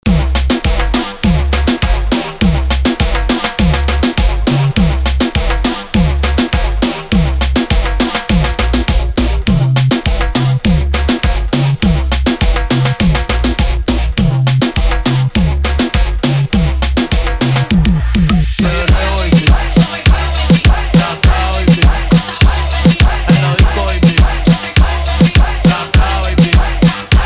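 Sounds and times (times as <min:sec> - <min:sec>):
music intro at 102 bpm: 0:00.0 - 0:27.2.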